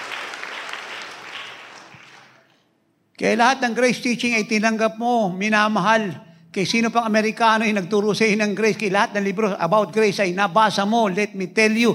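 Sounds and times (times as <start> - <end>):
audience applause: 0.0 - 2.5
speech: 3.2 - 11.9.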